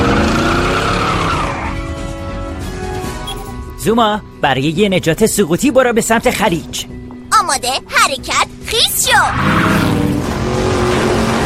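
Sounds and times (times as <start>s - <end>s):
tires squealing as a cartoon vehicle accelerates away: 0.0s - 2.2s, 9.1s - 11.4s
speech: 3.8s - 10.1s.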